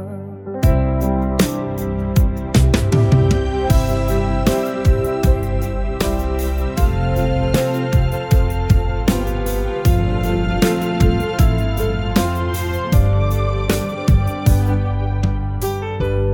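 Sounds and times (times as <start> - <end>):
drums mix for a simple love song: 0.6 - 16.3.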